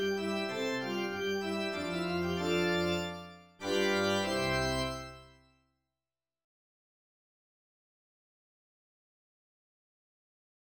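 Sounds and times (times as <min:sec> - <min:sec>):
galop on organ: 0:00.0 - 0:05.2.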